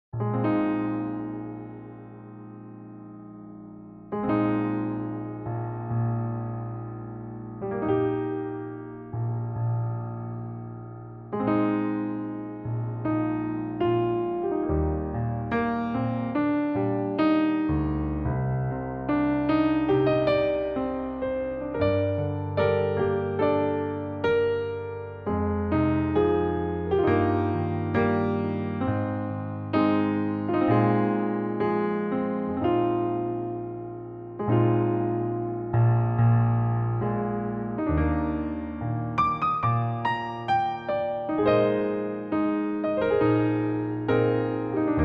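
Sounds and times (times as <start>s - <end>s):
electric piano: 0.1s - 45.0s.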